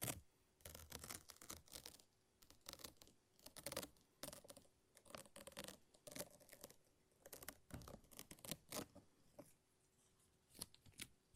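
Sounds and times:
lint roller and tape peeling and ripping: 0.0s - 8.9s.

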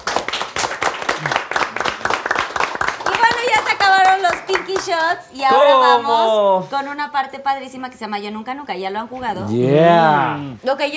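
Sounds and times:
group clapping: 0.0s - 5.3s
speech: 4.8s - 10.9s.

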